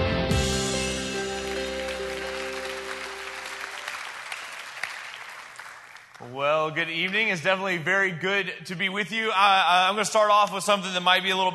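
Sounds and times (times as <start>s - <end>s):
audience applause at a Savannah Christian gathering welcoming a speaker: 0.8s - 6.4s
speech: 6.3s - 11.5s.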